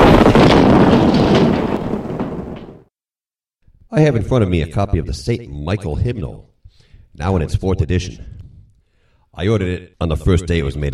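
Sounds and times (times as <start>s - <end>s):
explosion sound effect: 0.0s - 2.9s
speech: 4.0s - 6.5s, 7.2s - 8.4s, 9.4s - 10.9s.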